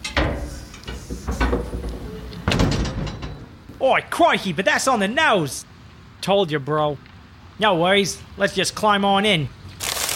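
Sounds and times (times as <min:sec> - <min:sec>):
outback dunny door being opened: 0:01.3 - 0:03.7
speech: 0:03.8 - 0:09.6.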